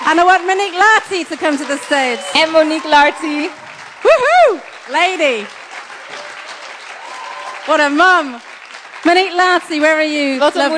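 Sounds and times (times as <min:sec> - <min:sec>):
audience applause: 0:00.0 - 0:10.7
speech: 0:00.1 - 0:06.2, 0:07.7 - 0:10.7
faint whistle-like cheer: 0:02.2 - 0:04.6, 0:07.0 - 0:07.7.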